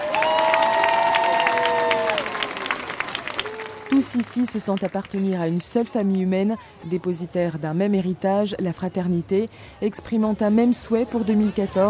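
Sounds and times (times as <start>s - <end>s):
crowd cheering in a square: 0.0s - 4.6s
applause: 0.0s - 5.7s
speech: 4.1s - 11.8s.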